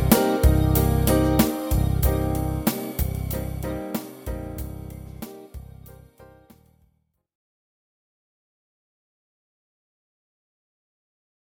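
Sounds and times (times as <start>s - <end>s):
minor blues music: 0.0s - 6.2s.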